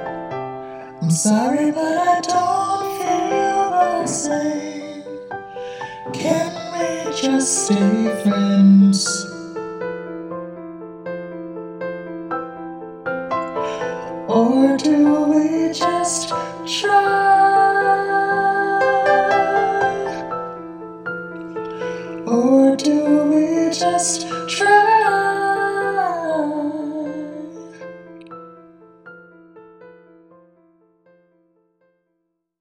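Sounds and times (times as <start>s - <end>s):
pop group with vocals: 0.9s - 9.6s, 13.5s - 20.5s, 21.6s - 27.8s.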